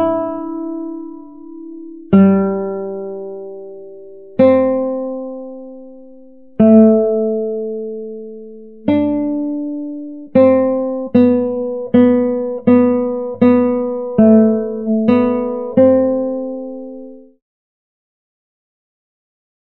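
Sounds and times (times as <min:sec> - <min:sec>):
guitar playing: 0:00.0 - 0:17.4.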